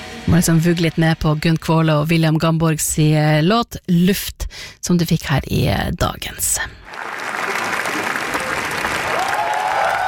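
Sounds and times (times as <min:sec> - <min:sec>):
speech: 0:00.2 - 0:07.1
film festival audience applauding in Cannes: 0:06.8 - 0:10.0.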